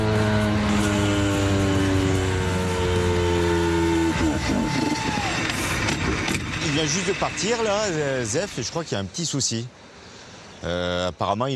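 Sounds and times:
old car engine running: 0.0s - 8.7s
speech: 6.8s - 9.9s, 10.6s - 11.5s.

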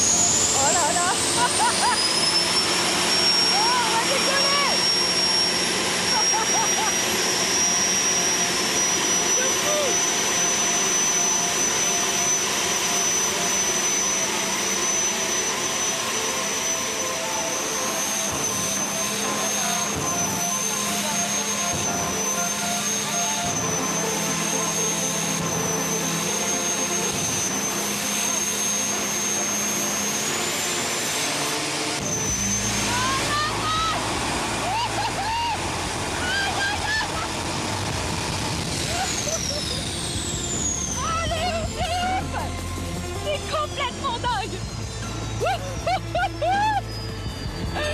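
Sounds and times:
car engine roaring heard inside the car: 0.0s - 47.9s
high whine: 0.0s - 47.9s
laughter: 0.6s - 2.6s, 5.7s - 7.4s, 34.4s - 37.6s, 38.7s - 40.1s, 41.1s - 42.6s, 45.2s - 46.9s.

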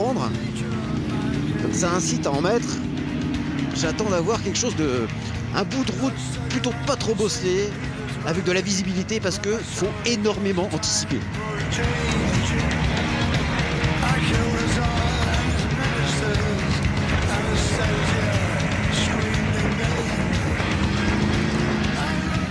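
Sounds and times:
motorcycle engine revving and sputtering: 0.0s - 22.4s
speech: 1.7s - 2.9s, 3.8s - 12.6s.

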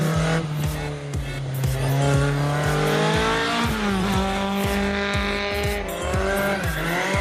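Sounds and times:
car engine revving hard and pulling away: 0.0s - 7.1s
car tires squealing: 1.8s - 7.1s.

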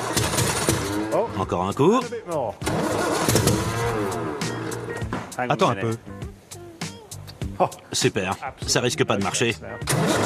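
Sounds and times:
car engine cranking and catching after fuel has been added: 0.0s - 1.8s, 2.6s - 5.4s, 9.8s - 10.2s
speech: 1.4s - 4.6s, 5.4s - 6.2s, 7.6s - 10.2s.

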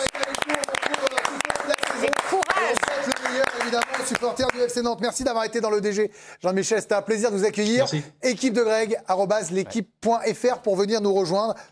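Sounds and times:
applause: 0.0s - 4.8s
speech: 3.8s - 11.7s.

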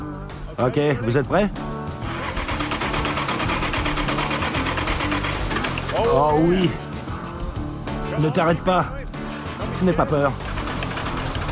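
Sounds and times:
speech: 0.6s - 1.7s, 6.0s - 6.8s, 8.2s - 9.0s, 9.8s - 10.5s
hand-built car engine sputtering to life: 2.0s - 6.1s, 10.4s - 11.5s.

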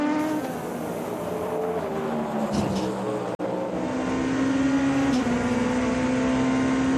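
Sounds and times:
Genesis race car engine on qualifying lap: 0.0s - 6.9s.

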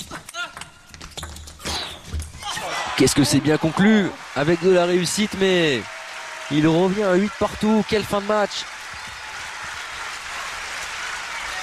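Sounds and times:
crowd applauding at a match in Malmö Arena: 2.7s - 11.6s
speech: 3.0s - 5.9s, 6.5s - 8.7s.

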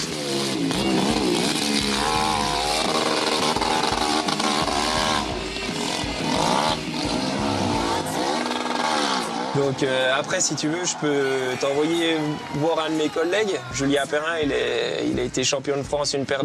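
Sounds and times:
hill-climb motorcycle engine revving: 0.0s - 12.6s
speech: 9.6s - 16.4s.

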